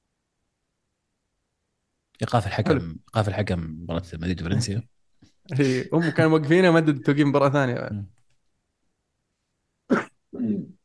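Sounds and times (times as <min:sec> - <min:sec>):
speech: 0:02.2 - 0:08.2
person sneezing: 0:09.9 - 0:10.8.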